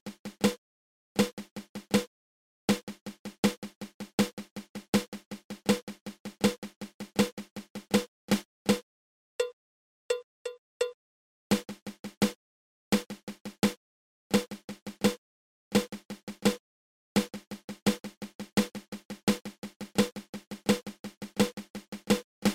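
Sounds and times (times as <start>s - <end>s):
flam paradiddle drum rudiment: 0.0s - 0.6s, 1.2s - 2.1s, 2.7s - 8.8s, 11.5s - 12.4s, 13.0s - 16.6s, 17.2s - 22.5s.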